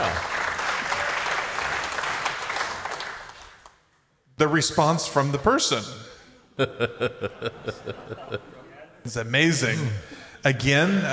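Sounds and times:
audience applause: 0:00.0 - 0:03.7
speech: 0:04.4 - 0:11.1
laughter: 0:06.6 - 0:10.2.

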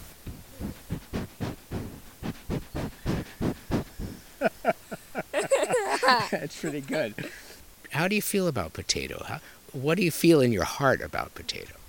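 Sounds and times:
animal sniffing at the microphone: 0:00.0 - 0:05.3
laughter: 0:04.0 - 0:07.6
speech: 0:06.1 - 0:11.8.

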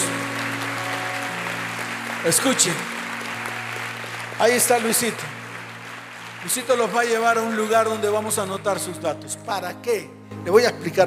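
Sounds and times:
audience applause: 0:00.0 - 0:09.0
speech: 0:02.2 - 0:03.0, 0:04.4 - 0:05.4, 0:06.4 - 0:11.0.

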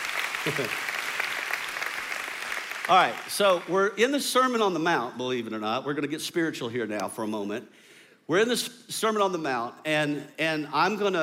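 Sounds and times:
audience clapping hands: 0:00.0 - 0:03.8
speech: 0:00.4 - 0:00.9, 0:02.9 - 0:11.2.

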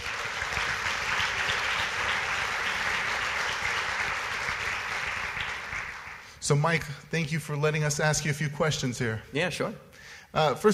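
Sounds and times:
church audience applause: 0:00.0 - 0:06.4
speech: 0:06.5 - 0:10.7.

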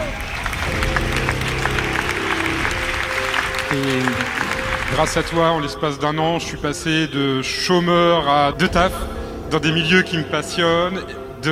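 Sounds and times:
raised voices and tonal cheers: 0:00.0 - 0:05.5
audience applause: 0:00.0 - 0:06.1
speech: 0:03.7 - 0:04.2, 0:04.9 - 0:11.5.

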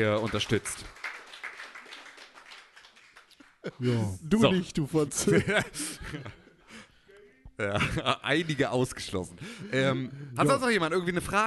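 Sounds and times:
speech: 0:00.0 - 0:01.0, 0:03.7 - 0:06.4, 0:07.6 - 0:11.4
audience applause: 0:00.0 - 0:03.9
laughter: 0:05.0 - 0:06.7, 0:07.6 - 0:08.6.

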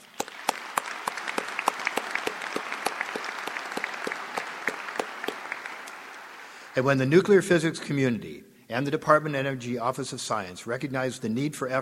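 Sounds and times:
audience applause: 0:00.0 - 0:06.8
speech: 0:06.8 - 0:11.7.

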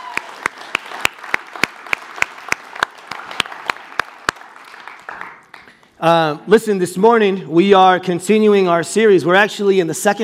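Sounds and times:
audience applause: 0:00.0 - 0:05.9
speech: 0:06.0 - 0:10.2.

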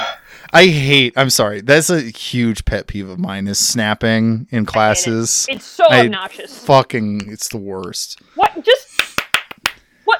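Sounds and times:
speech: 0:00.5 - 0:08.9
sharp hand claps: 0:08.9 - 0:09.8.

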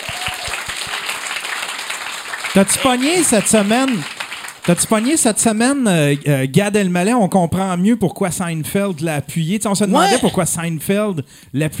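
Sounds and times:
crowd applause: 0:00.0 - 0:06.2
speech: 0:02.6 - 0:04.1, 0:04.7 - 0:11.7.

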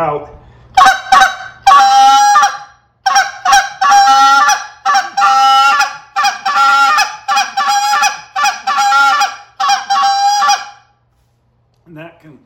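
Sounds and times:
goose call blown in raspy honks and clucks: 0:00.8 - 0:10.8.

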